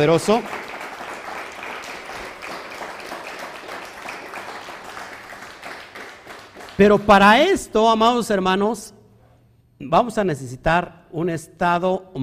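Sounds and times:
speech: 0.0 - 0.6, 6.8 - 9.0, 9.8 - 12.2
audience applause: 0.0 - 7.2.

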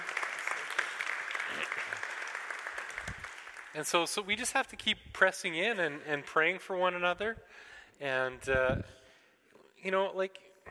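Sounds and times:
audience applause: 0.0 - 4.5
speech: 3.8 - 9.0, 9.8 - 10.4.

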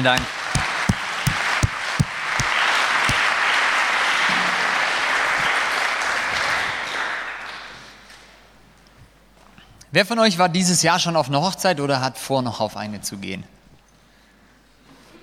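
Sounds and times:
speech: 0.0 - 0.4, 9.9 - 13.6
audience applause for the band: 0.0 - 7.9.

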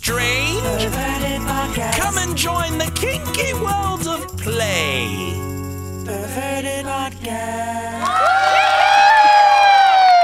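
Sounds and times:
speech: 0.1 - 8.6
studio audience whooping: 8.0 - 10.2.

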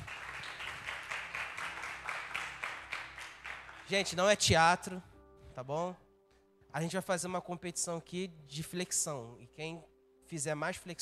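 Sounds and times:
audience applause: 0.0 - 4.1
speech: 3.9 - 6.0, 6.7 - 11.0.

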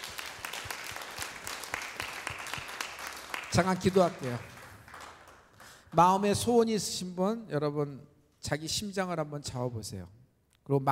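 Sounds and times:
audience applause: 0.0 - 5.8
speech: 3.6 - 4.5, 5.9 - 10.9.

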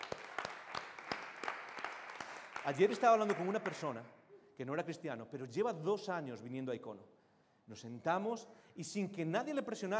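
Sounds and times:
group applauding: 0.0 - 4.1
speech: 2.6 - 9.9.

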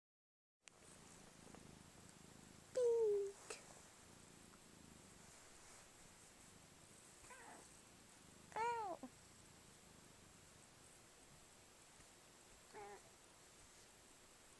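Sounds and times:
cat meowing: 8.5 - 9.1.

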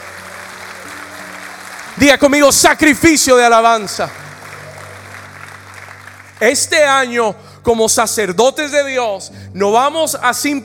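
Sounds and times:
audience applauding loudly: 0.0 - 7.2
speech: 2.0 - 4.2, 6.4 - 10.6.

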